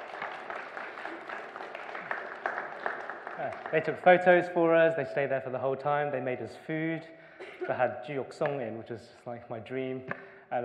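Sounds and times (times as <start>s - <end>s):
round of applause: 0.0s - 4.4s
speech: 3.4s - 10.6s.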